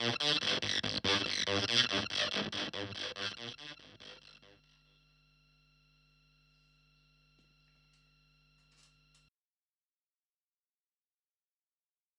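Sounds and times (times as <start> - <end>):
evil filtered fuzz synth loop: 0.0 - 5.3.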